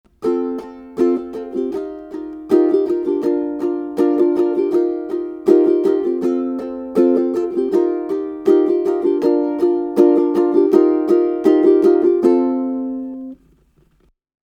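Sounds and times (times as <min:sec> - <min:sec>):
ukulele strumming: 0:00.1 - 0:13.6.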